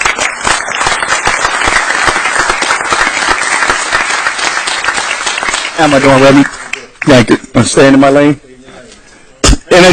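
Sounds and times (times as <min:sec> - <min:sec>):
audience applause: 0:00.0 - 0:07.3
speech: 0:05.8 - 0:08.5, 0:09.8 - 0:09.9.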